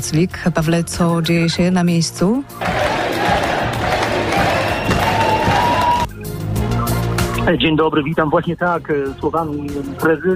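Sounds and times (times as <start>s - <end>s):
speech: 0.0s - 4.0s, 7.4s - 10.3s
crowd cheering: 2.6s - 6.1s.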